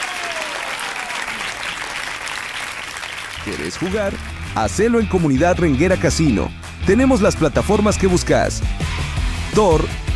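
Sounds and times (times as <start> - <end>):
audience applause: 0.0 - 5.0
speech: 3.4 - 10.0.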